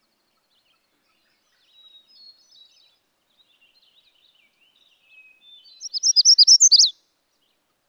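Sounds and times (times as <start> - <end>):
magnolia warbler singing: 0.7 - 7.0.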